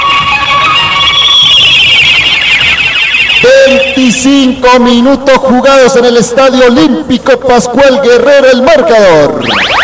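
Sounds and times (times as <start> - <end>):
stadium buzzer marking game time: 0.1 - 4.2
speech: 4.0 - 9.8.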